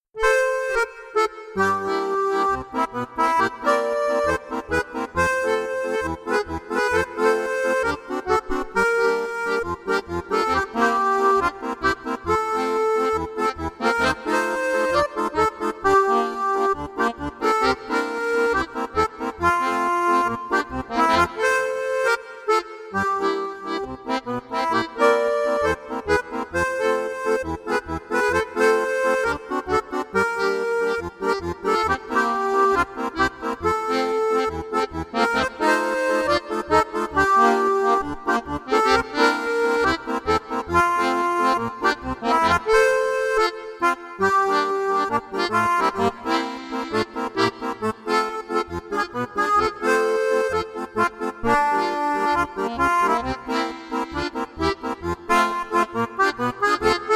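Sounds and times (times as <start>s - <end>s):
beguine duet: 0.2s - 57.1s.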